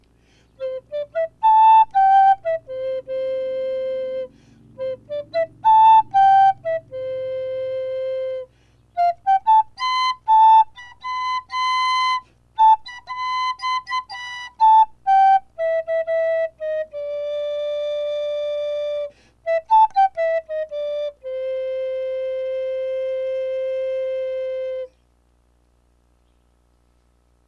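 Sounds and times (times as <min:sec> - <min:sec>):
flute: 0:00.5 - 0:25.0.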